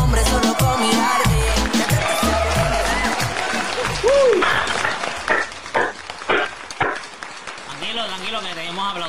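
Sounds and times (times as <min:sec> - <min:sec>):
whoop: 0:00.1 - 0:04.5
audience applause: 0:00.1 - 0:09.0.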